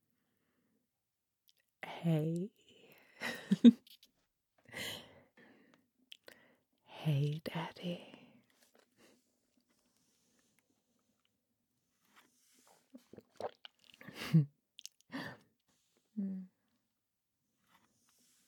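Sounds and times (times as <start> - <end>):
speech: 2.0 - 4.0, 7.0 - 8.1, 14.3 - 14.5
drinking water: 13.0 - 14.1.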